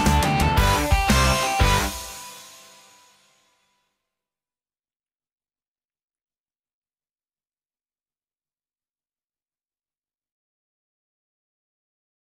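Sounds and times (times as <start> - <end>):
instrumental recorder accompaniment for a children's fruit song: 0.0 - 3.0.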